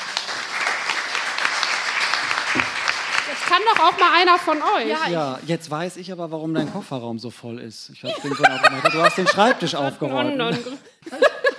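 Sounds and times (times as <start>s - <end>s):
applause: 0.0s - 4.9s
speech: 3.5s - 11.3s
laughter: 8.0s - 11.5s.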